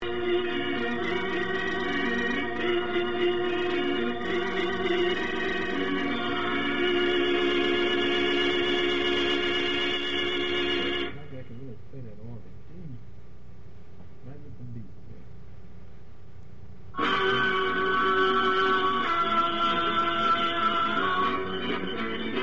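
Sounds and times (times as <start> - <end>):
radio music mix: 0.0 - 11.4, 16.9 - 22.4.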